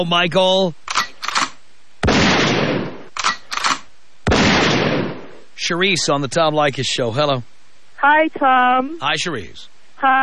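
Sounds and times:
speech: 0.0s - 0.8s, 5.6s - 10.2s
gunshots sound effect: 0.9s - 5.4s.

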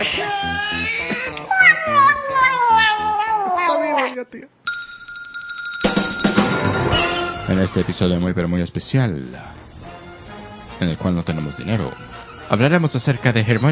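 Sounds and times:
person imitating a cat meowing: 0.0s - 4.3s
steady high beep: 4.7s - 7.2s
speech: 7.5s - 9.6s, 10.8s - 13.7s.

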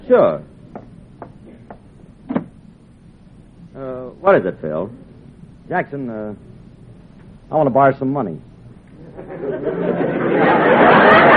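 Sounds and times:
speech: 0.1s - 0.5s, 3.8s - 5.0s, 5.7s - 6.5s, 7.5s - 8.5s, 9.2s - 11.3s
door closing: 2.3s - 2.6s
laughter: 8.9s - 11.3s.

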